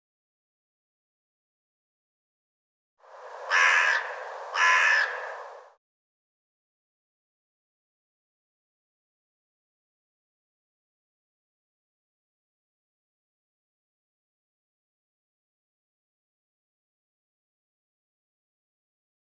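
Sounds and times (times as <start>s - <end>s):
bird cawing harshly: 3.4s - 5.8s.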